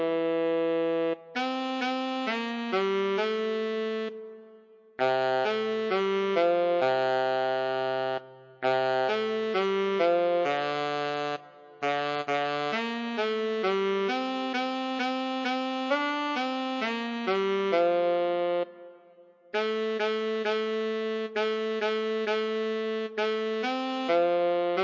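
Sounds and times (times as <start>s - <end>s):
solo tenor saxophone: 0.0s - 24.8s.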